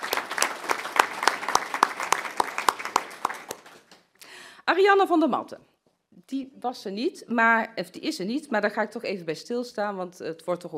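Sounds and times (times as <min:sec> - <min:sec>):
small group applauding: 0:00.0 - 0:04.2
speech: 0:04.7 - 0:05.7, 0:06.3 - 0:10.7.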